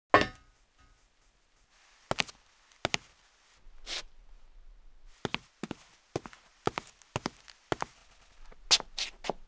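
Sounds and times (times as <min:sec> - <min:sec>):
footsteps: 0:00.6 - 0:03.3, 0:05.1 - 0:09.4.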